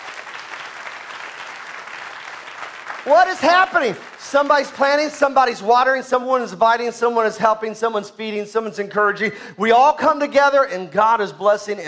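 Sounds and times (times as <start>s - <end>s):
church congregation clapping in praise: 0.0s - 5.6s
speech: 3.0s - 11.8s.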